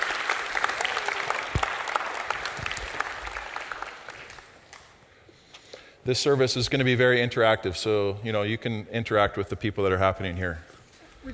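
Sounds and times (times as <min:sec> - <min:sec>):
church audience applause: 0:00.0 - 0:04.9
speech: 0:06.1 - 0:11.3.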